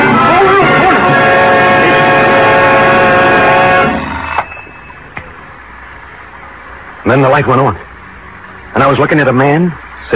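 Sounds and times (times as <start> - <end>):
alarm clock electric ringing: 0.0 - 5.3
speech: 7.1 - 7.8, 8.8 - 10.1.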